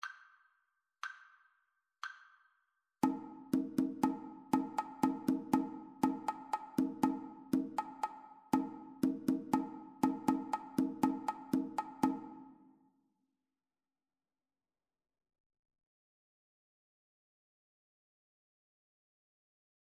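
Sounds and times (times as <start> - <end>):
two-part rhythm: 3.0 - 12.6.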